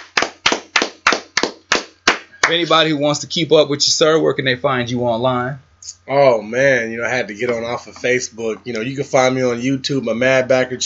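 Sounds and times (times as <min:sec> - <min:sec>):
applause: 0:00.0 - 0:02.6
speech: 0:02.5 - 0:10.8.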